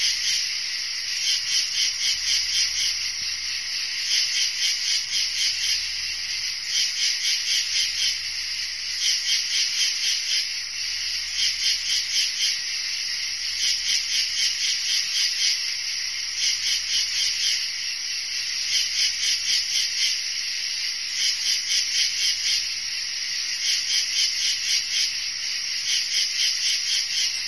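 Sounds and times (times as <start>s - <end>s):
crickets chirping: 0.0s - 27.4s.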